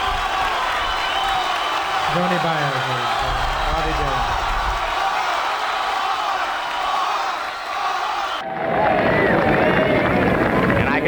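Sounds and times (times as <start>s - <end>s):
concert crowd applauding and cheering to welcome a singer: 0.0s - 11.0s
speech: 2.1s - 4.4s.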